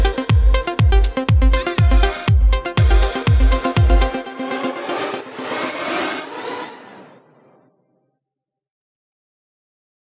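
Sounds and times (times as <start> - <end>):
rhythm track at 121 bpm with all stems: 0.0 - 6.1.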